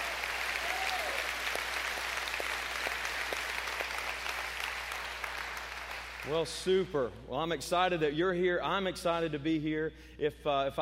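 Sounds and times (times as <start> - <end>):
church congregation applauding to welcome one another: 0.0 - 6.6
speech: 6.2 - 10.8.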